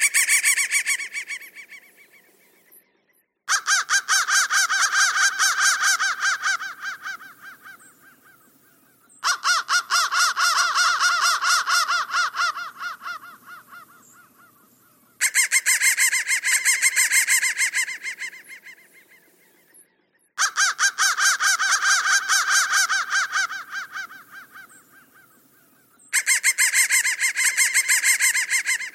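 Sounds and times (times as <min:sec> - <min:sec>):
crow cawing: 0:00.0 - 0:02.2, 0:03.5 - 0:19.3, 0:20.4 - 0:28.9.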